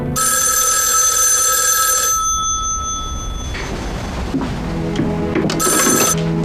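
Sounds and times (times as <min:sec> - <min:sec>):
telephone ringing on outgoing call: 0:00.1 - 0:04.3, 0:05.5 - 0:06.3.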